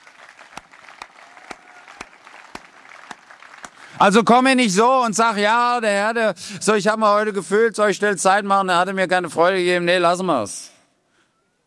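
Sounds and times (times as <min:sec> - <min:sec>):
audience applause: 0:00.0 - 0:04.4
speech: 0:04.0 - 0:10.7.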